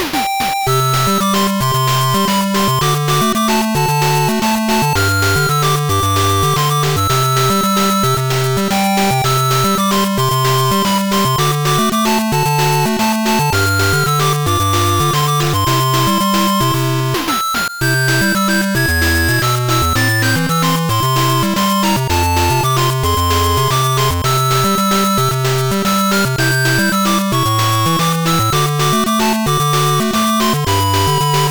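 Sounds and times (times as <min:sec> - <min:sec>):
peaceful 8-bit chiptune game music: 0:00.0 - 0:31.4.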